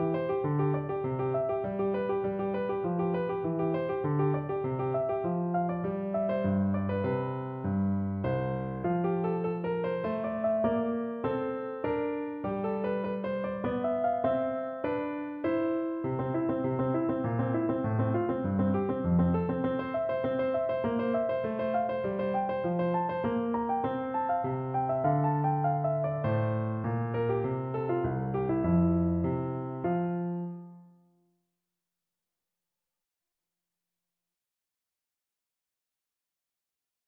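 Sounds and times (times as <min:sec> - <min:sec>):
minuet in F major on piano: 0:00.0 - 0:31.2.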